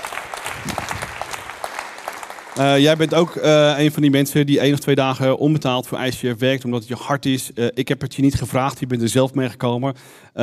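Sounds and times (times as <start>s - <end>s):
crowd applause: 0.0s - 3.7s
speech: 2.6s - 10.4s.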